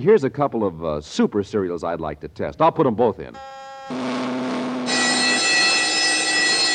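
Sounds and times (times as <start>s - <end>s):
speech: 0.0s - 4.4s
steady hum: 3.9s - 5.2s
bright sustained bell ringing: 4.8s - 6.7s.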